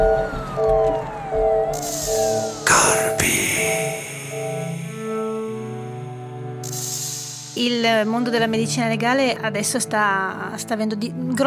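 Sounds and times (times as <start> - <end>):
ambulance siren: 0.0 - 6.0
speech: 8.0 - 11.4.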